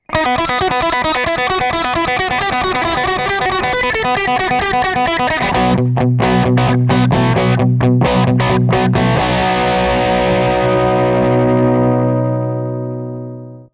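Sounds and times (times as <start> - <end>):
guitar: 0.0 - 13.7.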